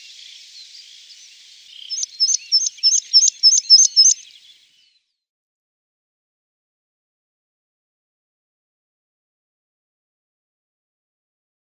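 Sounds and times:
meadow pipit song: 0.0 - 5.0.

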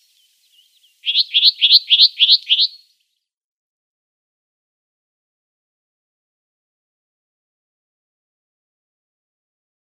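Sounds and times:
Sombre Tit song: 0.0 - 3.2.

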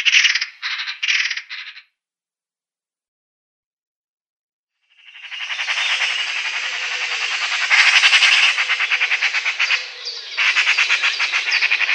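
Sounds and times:
Eurasian magpie rattling loudly in a dense chatter: 0.0 - 1.8, 5.1 - 11.9.

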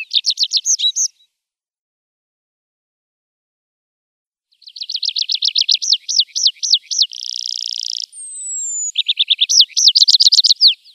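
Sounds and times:
tree pipit singing looping notes, trills, rattle and downward slurs: 0.0 - 1.1, 4.6 - 10.9.

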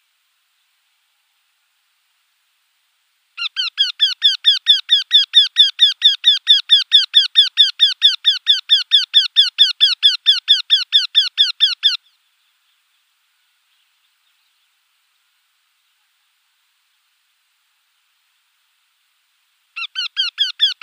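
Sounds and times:
Eurasian wryneck display call: 3.4 - 12.2, 19.7 - 20.8.

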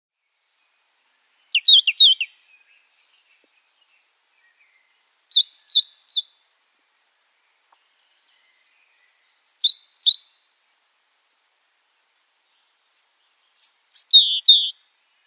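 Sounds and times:
Tenerife robin subspecies superbus singing on Tenerife: 1.0 - 6.4, 7.7 - 10.5, 12.4 - 15.2.

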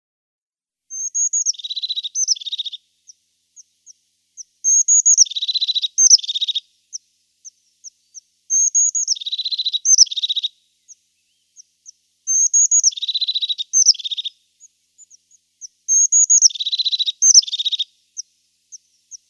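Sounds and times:
Crested tit giving rapid high chattering phrases of short slurred notes: 0.9 - 19.2.

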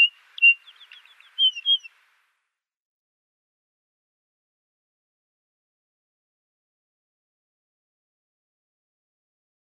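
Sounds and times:
trumpeter finch song: 0.0 - 2.5.

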